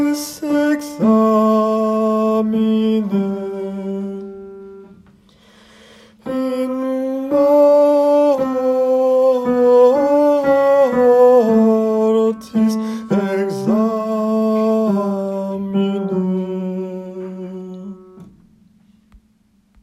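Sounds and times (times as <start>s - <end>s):
tenor singing: 0.0s - 5.0s, 6.2s - 18.3s.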